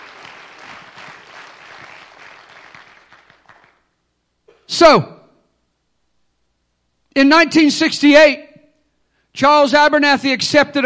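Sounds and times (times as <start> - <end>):
audience clapping hands: 0.0 - 3.9
speech: 4.8 - 5.2, 7.2 - 8.5, 9.4 - 10.8.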